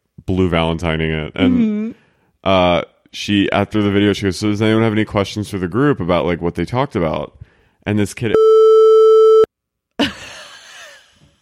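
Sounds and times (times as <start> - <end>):
speech: 0.3 - 8.5
censor bleep over a word: 8.4 - 9.5.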